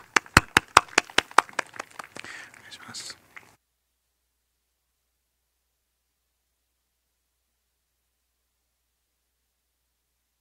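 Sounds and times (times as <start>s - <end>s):
audience clapping: 0.0s - 3.5s.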